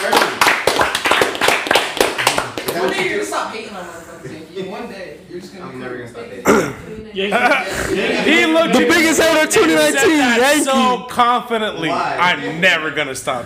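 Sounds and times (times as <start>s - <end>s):
round of applause among a group: 0.0s - 3.1s
speech: 2.8s - 13.4s.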